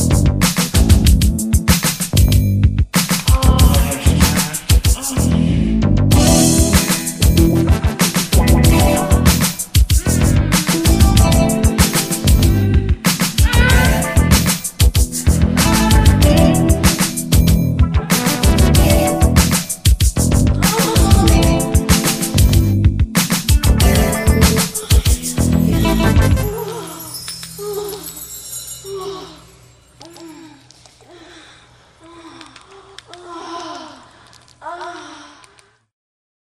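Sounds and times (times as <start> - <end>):
groove music: 0.0 - 26.6.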